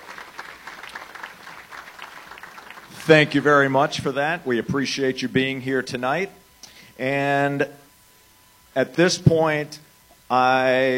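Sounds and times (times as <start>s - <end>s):
audience applause for elected officials: 0.0s - 3.7s
speech: 3.1s - 6.4s, 7.0s - 7.8s, 8.8s - 10.9s.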